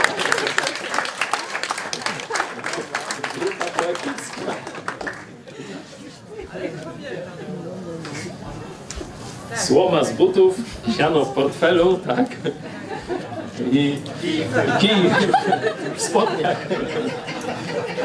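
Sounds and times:
audience applause: 0.0s - 5.5s
laughter: 0.0s - 8.4s, 10.8s - 18.0s
crowd chatter: 0.0s - 18.0s
speech: 9.7s - 12.7s, 13.6s - 18.0s.

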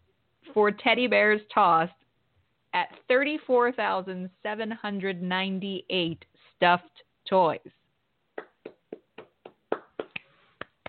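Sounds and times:
speech: 0.5s - 2.0s, 2.8s - 7.8s
hand claps from a sports commentator: 8.4s - 10.8s.

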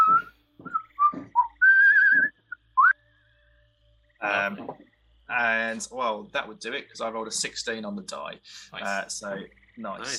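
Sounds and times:
person whistling in imitation of a recorder: 0.0s - 2.9s
speech: 4.3s - 10.1s.

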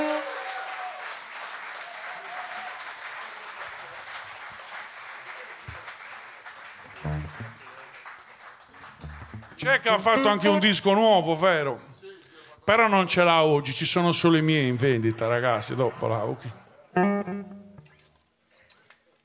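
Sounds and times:
crowd applauding: 0.0s - 10.9s
speech: 9.6s - 11.9s, 12.7s - 17.1s.

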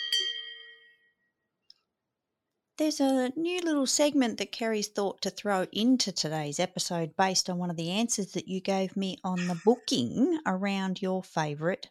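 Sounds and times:
round bell ding: 0.0s - 1.2s
speech: 2.8s - 11.8s.

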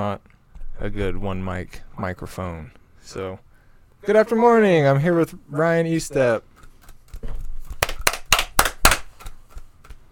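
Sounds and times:
speech: 0.0s - 6.5s
sharp loud handclaps: 7.8s - 9.2s.

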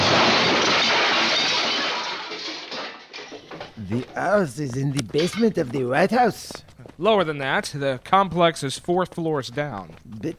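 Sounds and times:
door being smashed open: 0.0s - 3.8s
splintering and rattling debris: 0.0s - 3.8s
speech: 3.9s - 10.3s.

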